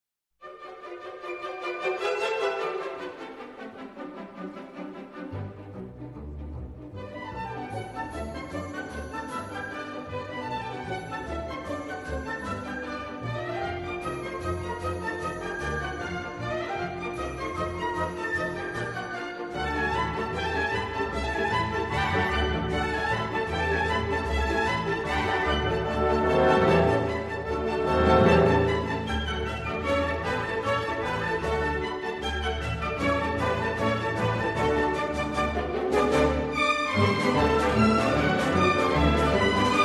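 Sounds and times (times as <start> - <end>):
quick polka music: 1.2 - 39.8.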